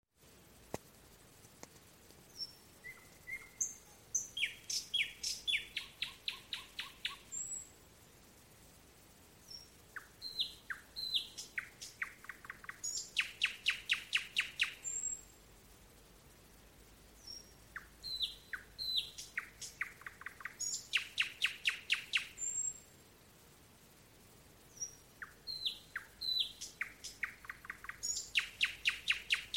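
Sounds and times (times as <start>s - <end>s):
nightingale singing: 2.2s - 8.3s, 9.3s - 15.4s, 16.5s - 22.9s, 24.6s - 29.5s.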